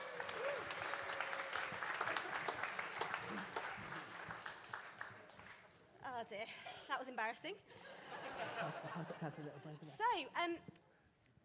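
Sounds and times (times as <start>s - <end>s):
audience applause: 0.0s - 5.7s
speech: 6.2s - 10.8s
laughter: 7.8s - 9.9s.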